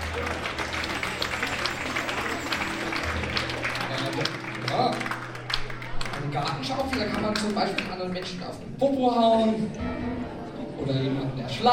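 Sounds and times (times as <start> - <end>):
audience applause: 0.0 - 8.6
speech: 6.4 - 10.1, 10.8 - 11.7.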